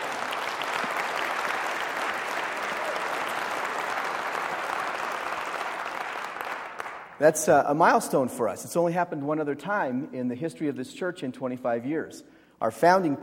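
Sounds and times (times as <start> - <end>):
church congregation cheering and clapping celebrating the calling of a new pastor: 0.0 - 7.2
speech: 7.2 - 13.2.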